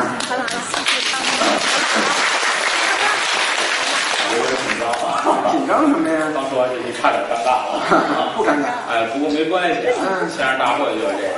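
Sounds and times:
sparse audience applause at a Chinese crosstalk comedy show: 0.1 - 5.2
laughter: 1.4 - 5.9, 7.0 - 8.8
speech: 5.7 - 11.3.

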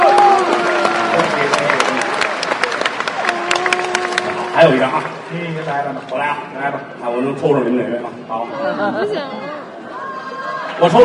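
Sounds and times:
audience applause: 0.0 - 5.8
speech: 4.6 - 9.6, 10.8 - 11.0.

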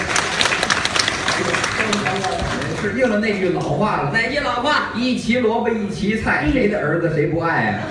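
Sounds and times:
audience applause at a comedy crosstalk show: 0.0 - 3.1
speech: 2.8 - 7.8.

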